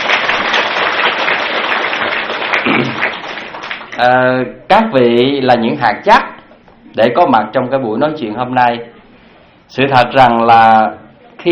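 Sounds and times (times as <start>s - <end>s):
audience applause at a Buddhist Dharma talk: 0.0s - 4.0s
speech: 4.0s - 6.3s, 6.9s - 8.9s, 9.7s - 11.5s.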